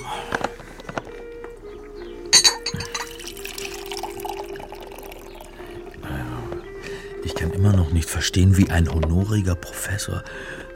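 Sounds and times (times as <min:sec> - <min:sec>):
crockery clinking: 0:02.3 - 0:04.5
coffee pouring into a cup: 0:02.8 - 0:06.0
speech: 0:07.6 - 0:10.6.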